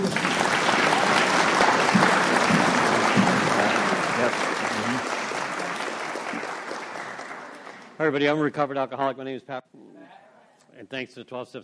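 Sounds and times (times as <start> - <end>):
audience applause welcoming a speaker: 0.0 - 8.4
speech: 8.0 - 9.9, 10.8 - 11.6.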